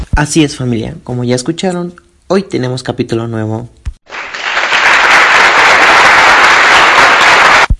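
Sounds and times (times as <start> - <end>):
speech: 0.2 - 3.8
crowd applause: 4.1 - 7.7.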